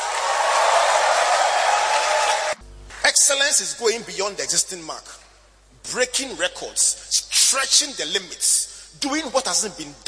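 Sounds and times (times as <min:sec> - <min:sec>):
audience shouting: 0:00.0 - 0:02.6
audience clapping: 0:00.0 - 0:03.2
speech: 0:03.5 - 0:05.2, 0:05.9 - 0:10.0.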